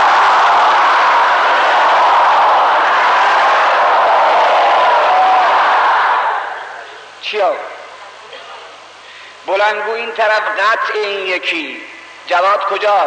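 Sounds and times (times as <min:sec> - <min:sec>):
crowd loudly chanting salawat blessing: 0:00.0 - 0:06.9
speech: 0:09.6 - 0:13.0.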